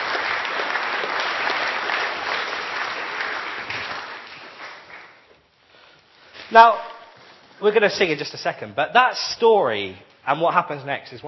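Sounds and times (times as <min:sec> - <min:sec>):
crowd applauding: 0:00.0 - 0:05.3
speech: 0:06.5 - 0:06.9, 0:07.6 - 0:11.2.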